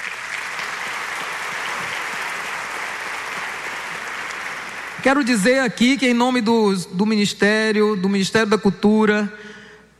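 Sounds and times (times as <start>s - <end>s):
audience applause: 0.0s - 5.1s
speech: 5.0s - 9.6s.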